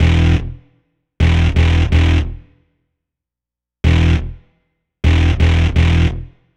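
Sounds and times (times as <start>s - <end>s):
rolling bass: 0.0s - 0.6s, 1.2s - 2.4s, 3.9s - 4.4s, 5.1s - 6.3s.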